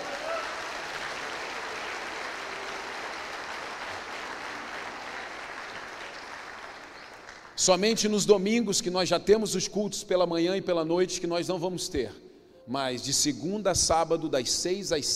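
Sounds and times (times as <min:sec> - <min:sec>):
audience applauding: 0:00.0 - 0:07.6
speech: 0:07.6 - 0:15.1.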